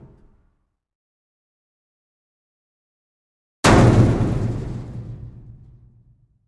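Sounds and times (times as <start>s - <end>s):
sledgehammer hitting dumpster: 3.6s - 6.2s.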